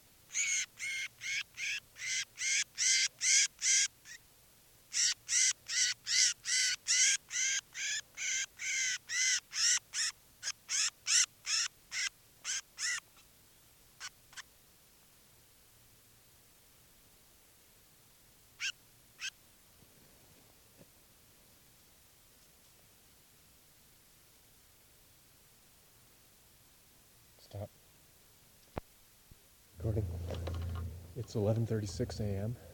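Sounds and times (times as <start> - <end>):
crossbill calling while held in hand: 0.3 - 4.2, 4.9 - 13.2, 18.6 - 19.4, 29.8 - 32.7
speech: 31.4 - 32.7.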